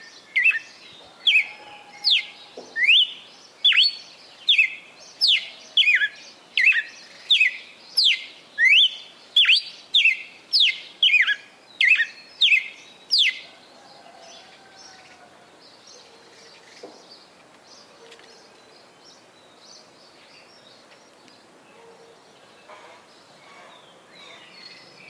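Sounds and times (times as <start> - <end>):
female red-cowled cardinal singing in Fortaleza-CE: 0.0 - 13.4.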